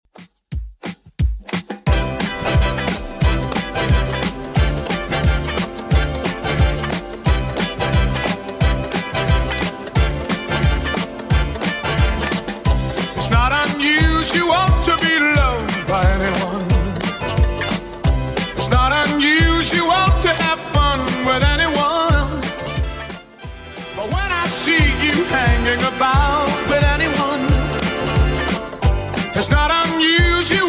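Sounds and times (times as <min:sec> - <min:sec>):
1960s-style drum beat at 178 BPM: 0:00.1 - 0:30.6.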